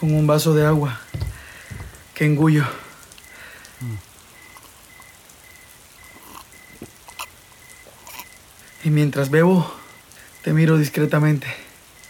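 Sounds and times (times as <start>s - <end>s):
speech: 0.0s - 1.2s, 2.2s - 2.8s, 3.8s - 4.1s, 8.8s - 9.8s, 10.4s - 11.6s
steady rain: 0.0s - 12.0s
soft low thump: 1.1s - 2.1s.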